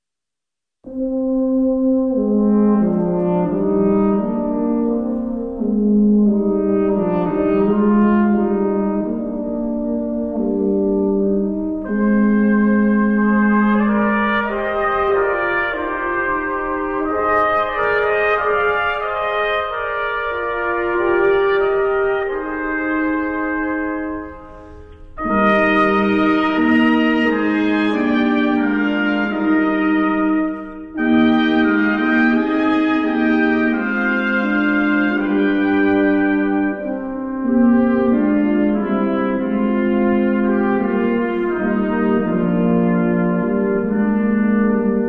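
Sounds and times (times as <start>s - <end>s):
brass instruments: 0.8s - 45.0s.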